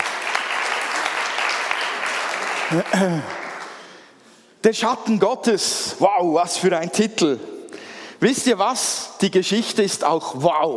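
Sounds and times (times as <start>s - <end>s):
audience clapping: 0.0s - 4.2s
speech: 2.7s - 3.4s, 4.6s - 7.5s, 8.2s - 10.7s.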